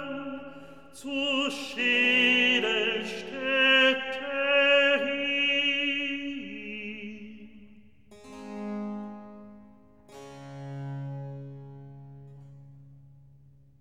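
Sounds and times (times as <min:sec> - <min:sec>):
recitative singing: 0:00.0 - 0:07.9.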